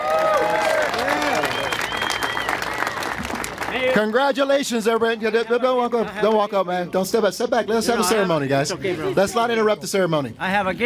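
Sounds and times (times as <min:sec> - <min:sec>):
crowd applauding Denver mayor Michael B. Hancock at an outdoor boulevard ceremony: 0:00.0 - 0:04.6
speech: 0:03.9 - 0:10.8.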